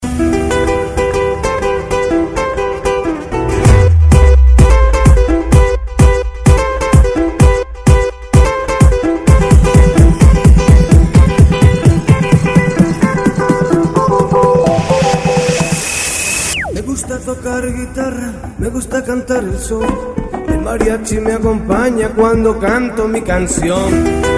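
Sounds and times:
mariachi music mix: 0:00.0 - 0:24.3.

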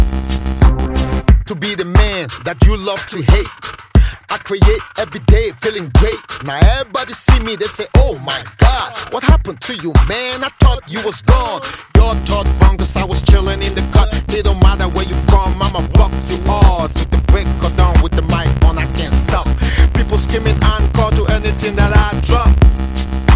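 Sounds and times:
rapping over beats: 0:00.1 - 0:23.3.

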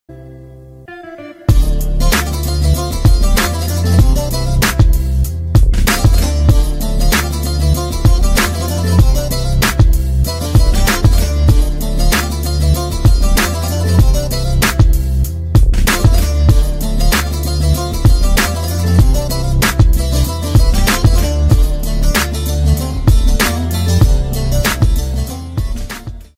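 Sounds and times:
classic saz playing: 0:00.1 - 0:26.3.

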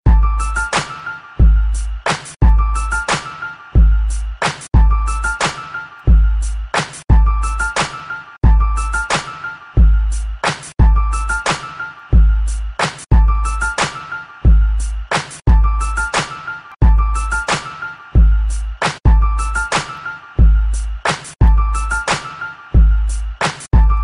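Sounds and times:
cool beat: 0:00.1 - 0:24.0.

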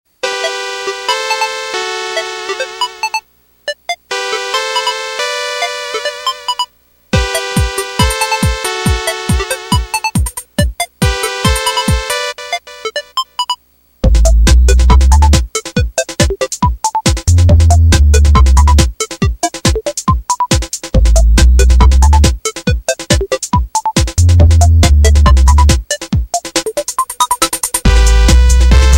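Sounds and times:
technopop music: 0:00.2 - 0:13.4, 0:14.0 - 0:28.9.

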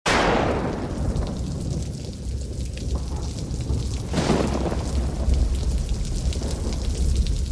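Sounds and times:
rainstorm: 0:00.1 - 0:07.5.

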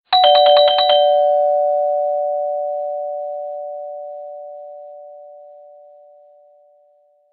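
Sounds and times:
doorbell: 0:00.1 - 0:06.9.

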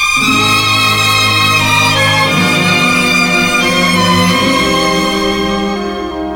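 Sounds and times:
guitar: 0:00.2 - 0:06.3.

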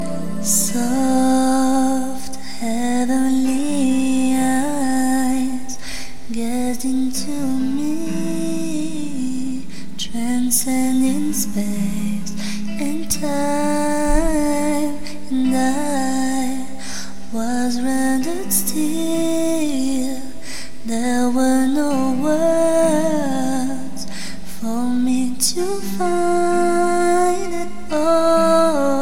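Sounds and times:
beautiful singing voice: 0:00.0 - 0:29.0.

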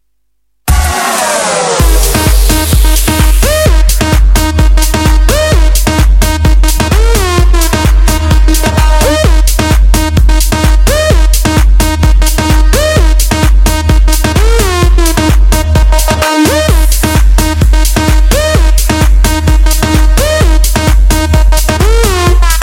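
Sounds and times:
house music: 0:00.7 - 0:22.6.

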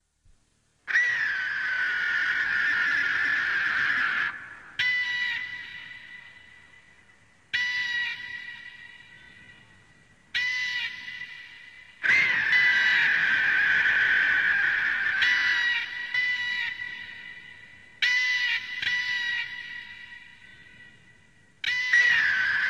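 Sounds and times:
buzzard calling: 0:00.9 - 0:06.8, 0:07.6 - 0:09.6, 0:10.4 - 0:20.8, 0:21.6 - 0:22.6.

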